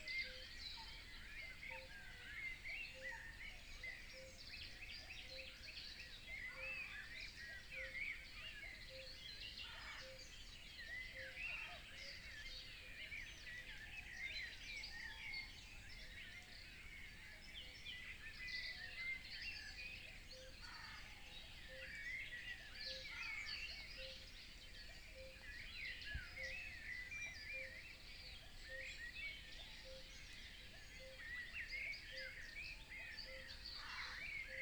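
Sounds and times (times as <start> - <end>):
European wetland birds dawn chorus: 0.0 - 34.6.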